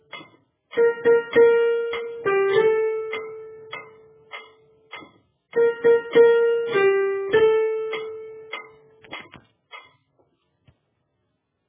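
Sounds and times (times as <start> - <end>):
soprano accompaniment music: 0.0 - 4.4, 5.6 - 9.2.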